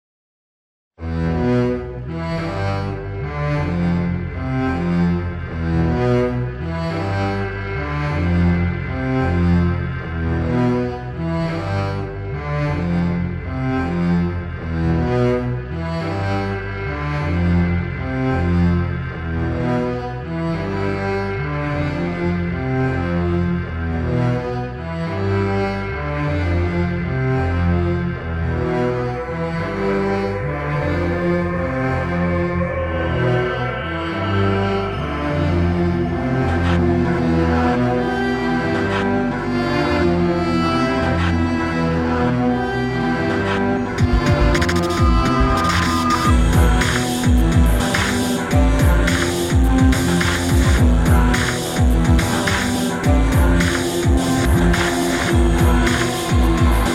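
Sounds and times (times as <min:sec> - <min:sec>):
cello trailer music: 0:01.0 - 0:56.9.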